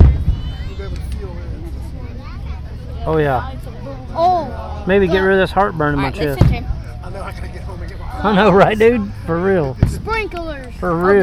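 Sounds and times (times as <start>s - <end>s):
speech: 3.1s - 11.2s
thud: 6.4s - 6.7s, 9.8s - 10.1s
deep fireworks finale boom: 9.8s - 10.2s.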